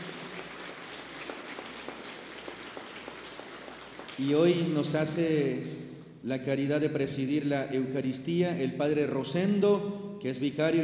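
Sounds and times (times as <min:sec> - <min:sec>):
audience applause: 0:00.0 - 0:04.7
speech: 0:04.2 - 0:10.8.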